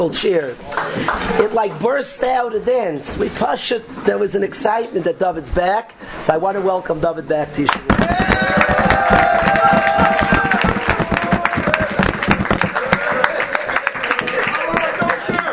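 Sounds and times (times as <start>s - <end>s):
speech: 0.0s - 8.3s
audience clapping: 0.7s - 1.3s, 7.7s - 15.5s.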